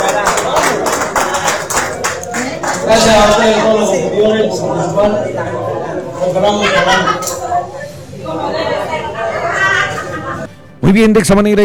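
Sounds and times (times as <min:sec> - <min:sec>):
audience applause: 0:00.0 - 0:03.6
laughter: 0:00.0 - 0:10.5
speech: 0:04.6 - 0:07.4, 0:10.8 - 0:11.6.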